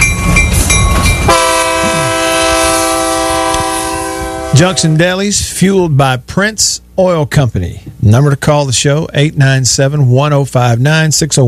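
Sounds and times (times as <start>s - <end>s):
train sound effect signalling phone caller: 0.0s - 6.1s
speech: 4.6s - 11.4s.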